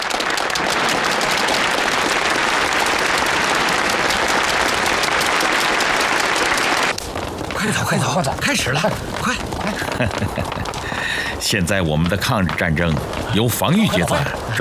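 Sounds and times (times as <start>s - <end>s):
audience applause greeting the opening of a gala evening: 0.0s - 11.4s
laughter: 3.5s - 4.6s, 9.3s - 11.2s, 13.6s - 14.5s
speech: 7.7s - 14.5s.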